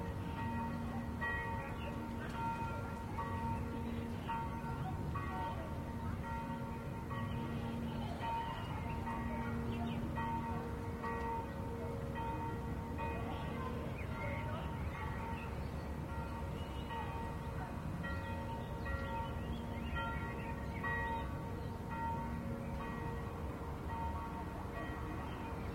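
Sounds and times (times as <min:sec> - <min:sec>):
church bells: 0:00.0 - 0:25.7.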